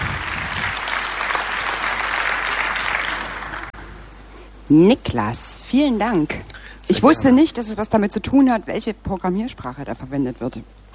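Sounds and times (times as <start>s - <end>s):
audience applause: 0.0s - 3.8s
speech: 4.7s - 10.8s.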